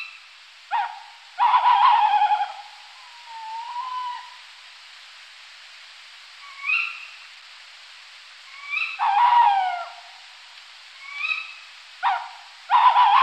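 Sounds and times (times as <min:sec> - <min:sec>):
tawny owl calls: 0:00.0 - 0:04.5, 0:06.4 - 0:07.2, 0:08.5 - 0:10.3, 0:11.0 - 0:13.2.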